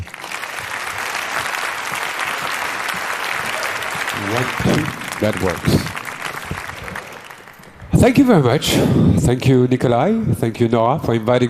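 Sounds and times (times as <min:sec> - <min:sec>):
audience applause: 0:00.0 - 0:08.6
speech: 0:04.2 - 0:06.0, 0:08.0 - 0:11.4.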